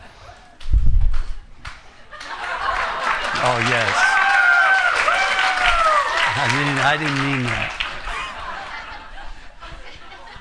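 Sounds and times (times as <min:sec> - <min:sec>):
laughter: 0:02.1 - 0:04.2, 0:06.0 - 0:10.3
audience applause: 0:02.2 - 0:09.0
speech: 0:03.4 - 0:04.1, 0:06.4 - 0:07.8.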